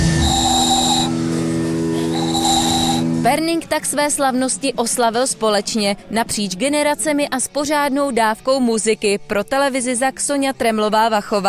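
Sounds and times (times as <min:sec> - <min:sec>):
handmade ball whistle being blown: 0:00.0 - 0:01.3, 0:02.0 - 0:03.1
speech: 0:03.3 - 0:11.4.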